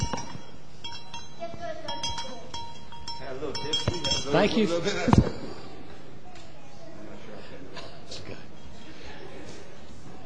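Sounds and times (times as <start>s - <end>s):
light metallic bell clinks: 0.0s - 4.8s
steady murmur of noise: 0.0s - 10.2s
speech: 3.4s - 5.4s.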